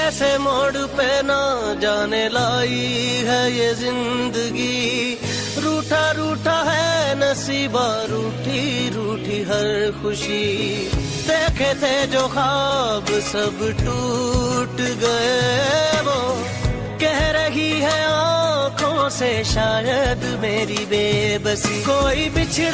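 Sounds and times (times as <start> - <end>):
sad song: 0.0 - 22.7.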